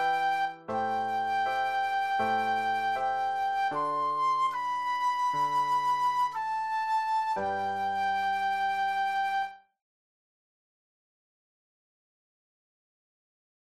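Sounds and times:
flute solo: 0:00.0 - 0:09.7.

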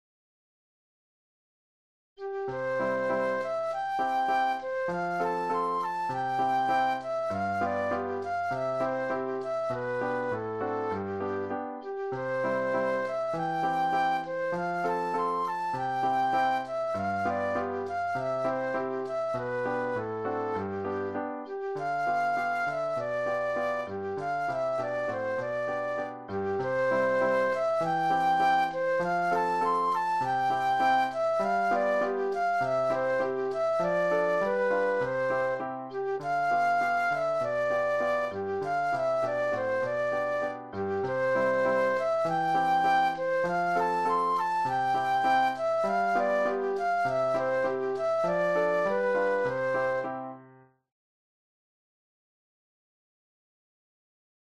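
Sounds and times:
flute solo: 0:02.2 - 0:50.4.

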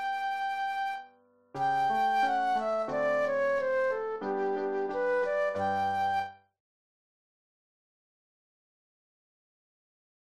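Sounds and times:
solo flute playing a classical aria: 0:00.0 - 0:06.4.

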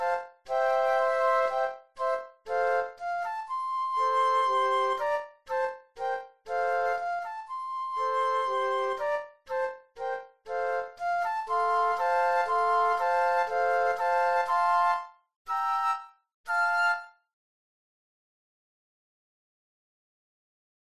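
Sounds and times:
flute trio playing: 0:00.0 - 0:09.4, 0:10.0 - 0:17.1.

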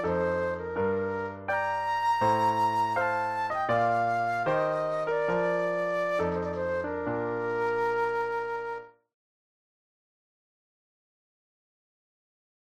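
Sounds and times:
classical air flute solo: 0:00.0 - 0:09.0.

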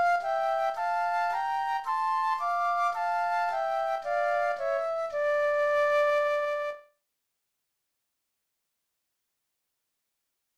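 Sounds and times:
flute duet: 0:00.0 - 0:07.0.

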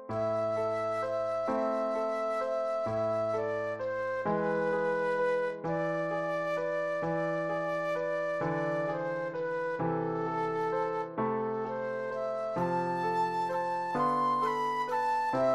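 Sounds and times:
flute solo: 0:00.1 - 0:15.5.

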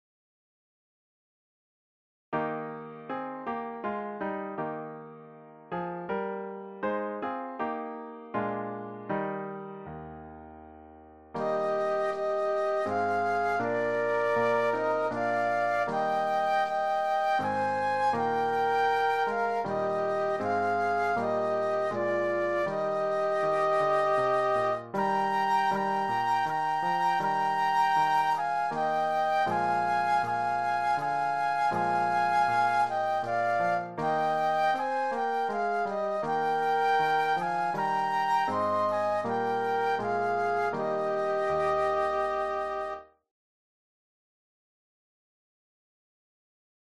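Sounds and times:
piano: 0:02.4 - 0:43.2
flute duet: 0:11.4 - 0:43.2.

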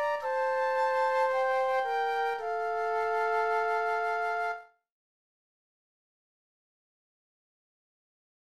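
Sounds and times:
flute duet: 0:00.0 - 0:04.8.

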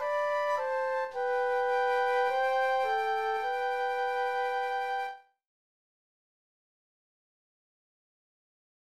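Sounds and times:
flute duet: 0:00.0 - 0:05.4.

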